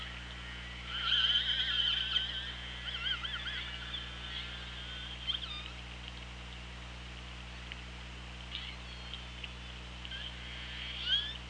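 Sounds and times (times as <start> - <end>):
low mechanical hum: 0.0 - 11.4
killer whale calls: 0.5 - 5.8, 10.1 - 11.4.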